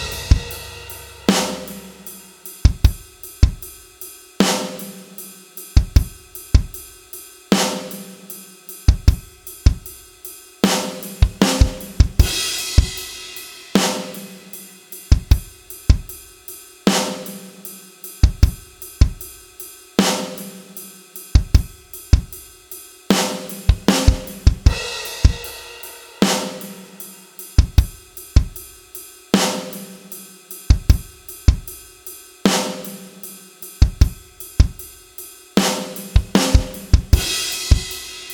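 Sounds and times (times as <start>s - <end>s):
different drums: 0.0s - 38.3s.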